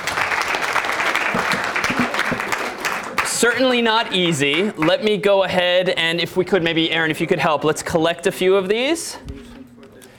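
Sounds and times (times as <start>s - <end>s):
audience applause: 0.0s - 5.2s
speech: 3.4s - 9.3s.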